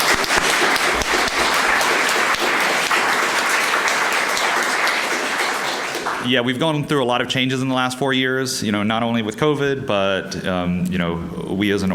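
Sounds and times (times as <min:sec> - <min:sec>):
audience applause: 0:00.0 - 0:06.3
speech: 0:06.3 - 0:11.9.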